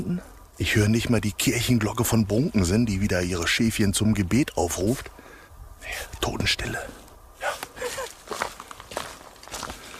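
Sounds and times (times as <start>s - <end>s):
speech: 0.0s - 5.2s, 5.8s - 7.0s
footsteps crunching on a path: 7.0s - 9.9s.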